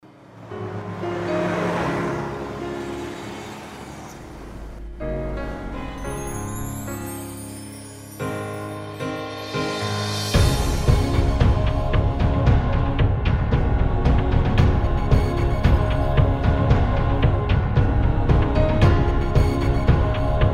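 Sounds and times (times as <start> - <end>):
documentary background music: 0.1 - 20.5.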